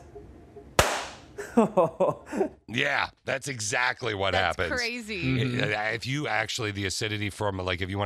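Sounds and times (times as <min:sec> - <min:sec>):
balloon popping sound effect: 0:00.8 - 0:01.3
speech: 0:01.6 - 0:08.0.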